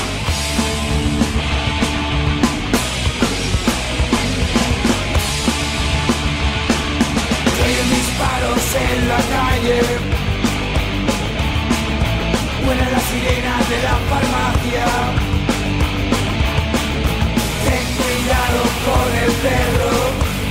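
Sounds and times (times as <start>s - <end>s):
song track from an EP: 0.1s - 20.4s.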